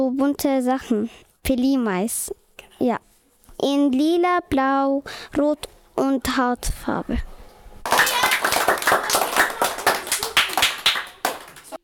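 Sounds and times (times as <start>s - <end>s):
speech: 0.1s - 7.4s
audience applause: 7.9s - 11.8s.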